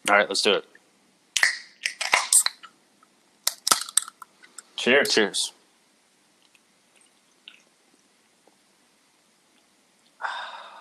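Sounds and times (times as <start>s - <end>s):
speech: 0.1s - 0.8s, 4.8s - 5.6s
can of hard seltzer cracking open: 1.4s - 2.7s, 3.4s - 4.3s.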